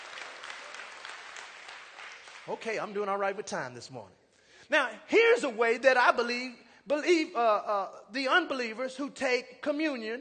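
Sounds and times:
audience hand clapping: 0.0 - 3.2
speech: 2.5 - 10.1.

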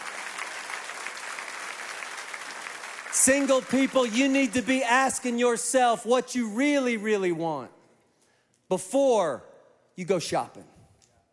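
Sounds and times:
audience clapping: 0.0 - 5.2
speech: 3.2 - 7.8, 8.7 - 10.7.

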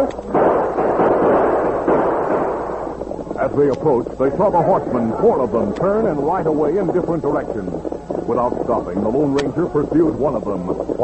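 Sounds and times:
gunshots sound effect: 0.2 - 11.0
speech: 3.6 - 11.0.

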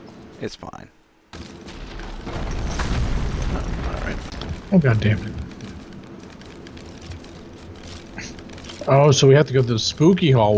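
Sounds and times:
speech: 0.4 - 1.5, 3.5 - 5.4, 8.8 - 10.5
explosion of a gothic cathedral in a video game: 1.7 - 5.9.

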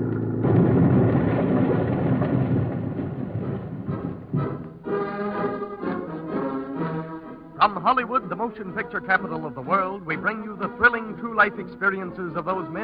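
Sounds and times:
bus crashing at bottom of hill: 0.1 - 6.1
speech: 7.8 - 12.8.

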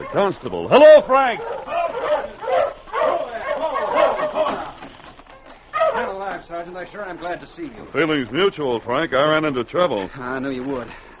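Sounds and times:
sled dogs barking and yipping excitedly: 0.0 - 7.4
speech: 0.1 - 1.8, 6.4 - 11.1.

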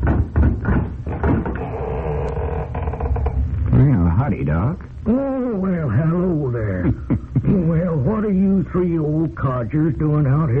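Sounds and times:
low wooden knocks and rattles of a door: 0.0 - 3.4
door creaking and scraping open: 0.0 - 4.0
speech: 4.2 - 10.5.

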